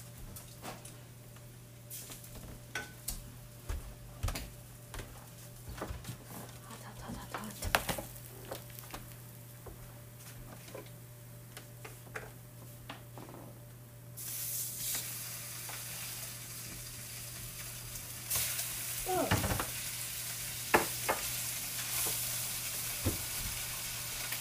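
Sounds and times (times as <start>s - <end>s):
low constant hum: 0.0s - 22.8s
food frying and sizzling in a hot pan: 7.7s - 9.5s, 14.2s - 24.3s.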